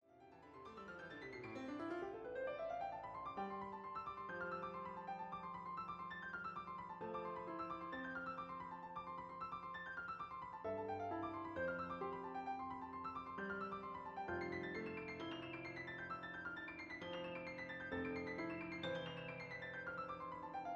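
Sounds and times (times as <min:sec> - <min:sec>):
piano four hands: 0:00.3 - 0:20.7.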